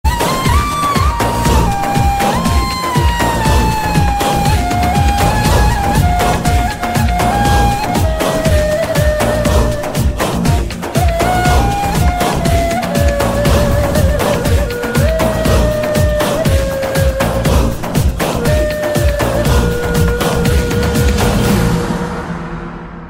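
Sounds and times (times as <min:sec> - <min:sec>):
ney flute playing zikir: 0:00.0 - 0:22.4.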